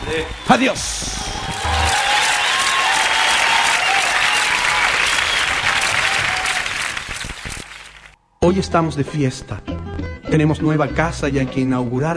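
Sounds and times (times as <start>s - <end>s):
audience applause: 0.0s - 8.2s
speech: 0.1s - 1.2s, 8.4s - 12.1s.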